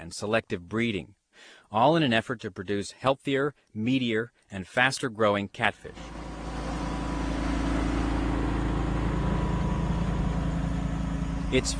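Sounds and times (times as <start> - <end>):
speech: 0.1 - 6.2, 11.5 - 11.7
faint hum: 5.8 - 11.7
truck engine rumbling moving slowly along a pond levee: 5.8 - 11.7.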